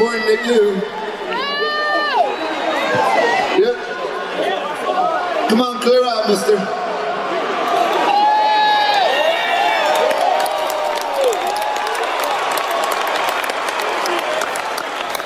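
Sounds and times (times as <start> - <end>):
crowd booing and jeering at a live event: 0.0 - 5.5, 6.8 - 15.2
speech: 0.3 - 1.0, 5.5 - 6.8
whistle-like whoops: 8.0 - 13.2.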